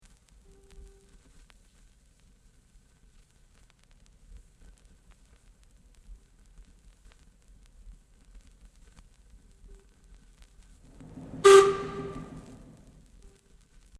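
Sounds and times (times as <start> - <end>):
whistle: 11.0 - 13.0.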